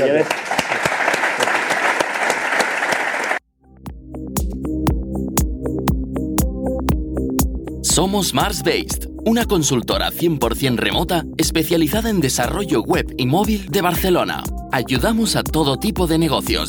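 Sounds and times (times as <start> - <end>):
speech: 0.0 - 0.6, 8.0 - 16.6
audience applause: 0.0 - 3.4
upbeat music with steady percussive hits: 3.7 - 16.6.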